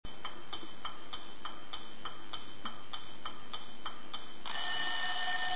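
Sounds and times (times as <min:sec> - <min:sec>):
clock: 0:00.1 - 0:05.4.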